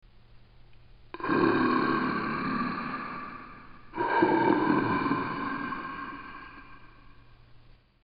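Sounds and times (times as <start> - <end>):
zombie: 1.2 - 7.3.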